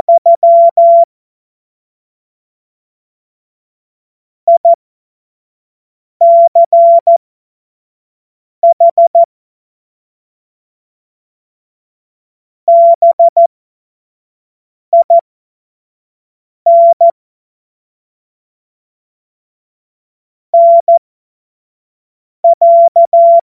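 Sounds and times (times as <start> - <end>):
CW Morse code beeps: 0.0 - 1.1, 4.5 - 4.8, 6.2 - 7.2, 8.6 - 9.3, 12.7 - 13.4, 15.0 - 15.2, 16.7 - 17.1, 20.6 - 21.0, 22.4 - 23.4.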